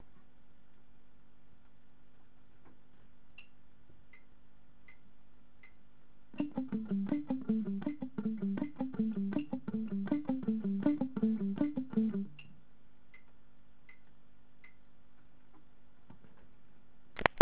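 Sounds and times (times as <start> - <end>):
alternate picking: 6.4 - 12.6.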